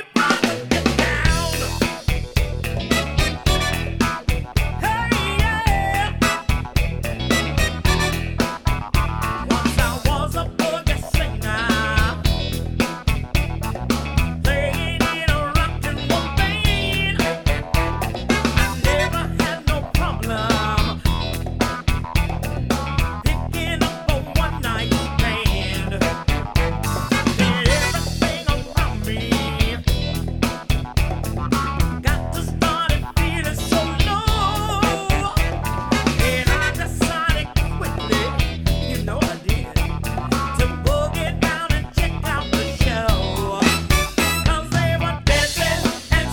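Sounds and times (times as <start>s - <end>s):
variety band playing: 0.1s - 46.3s.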